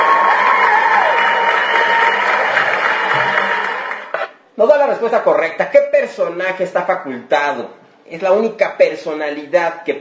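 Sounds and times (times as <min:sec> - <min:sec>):
applause: 0:00.0 - 0:04.3
speech: 0:04.6 - 0:09.9.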